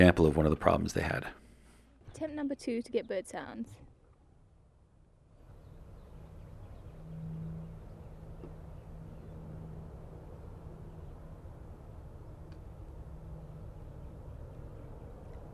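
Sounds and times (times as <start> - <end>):
speech: 0.0 - 1.4, 2.2 - 3.8
traffic noise: 5.4 - 15.5
airplane passing over: 5.5 - 15.5.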